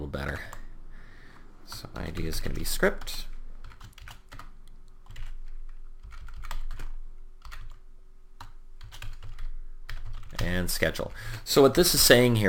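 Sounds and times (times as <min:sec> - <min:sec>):
faint hum: 0:00.0 - 0:12.4
typing code on a computer keyboard: 0:01.7 - 0:07.8, 0:08.4 - 0:10.5
speech: 0:01.9 - 0:03.3, 0:10.7 - 0:12.4.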